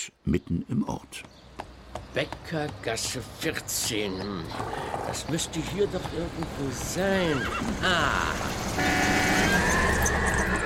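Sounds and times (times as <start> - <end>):
speech: 0.3 - 10.6
car horn honking near a horse: 8.8 - 10.6.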